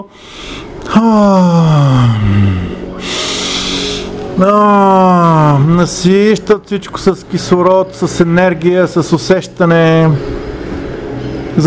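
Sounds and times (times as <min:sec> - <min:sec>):
speech: 0:00.0 - 0:03.1, 0:04.4 - 0:10.4
deep breathing during a guided relaxation exercise: 0:00.0 - 0:04.2.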